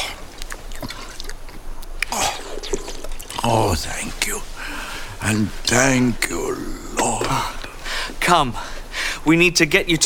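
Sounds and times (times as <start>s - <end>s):
water pouring from a canteen: 2.2s - 3.7s
speech: 3.4s - 7.6s, 8.2s - 10.0s.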